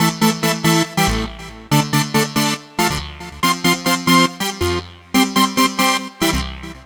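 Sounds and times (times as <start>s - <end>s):
techno synth: 0.0s - 6.8s.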